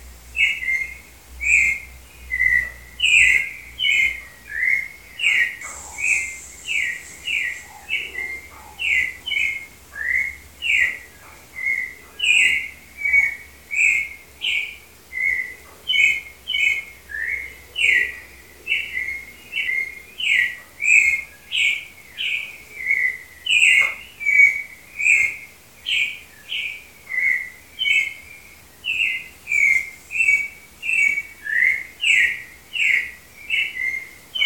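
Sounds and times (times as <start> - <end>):
Turdus grayi singing: 0.4 - 34.4.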